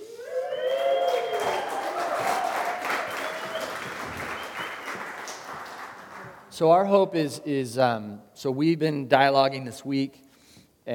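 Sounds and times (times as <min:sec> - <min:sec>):
high whoops and cheers: 0:00.0 - 0:05.0
crowd applause: 0:00.0 - 0:06.5
speech: 0:06.6 - 0:10.2.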